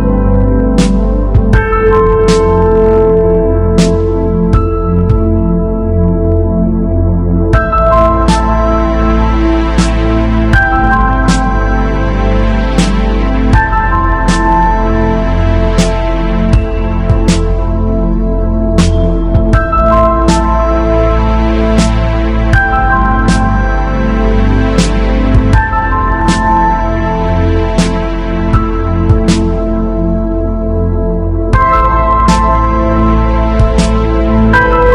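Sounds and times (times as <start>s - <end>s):
slow motion ambience: 0.0s - 34.9s.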